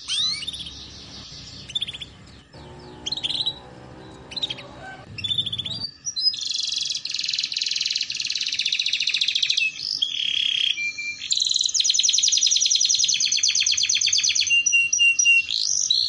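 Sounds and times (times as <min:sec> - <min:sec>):
low background hum: 0:00.0 - 0:05.9
canary singing: 0:00.0 - 0:16.0.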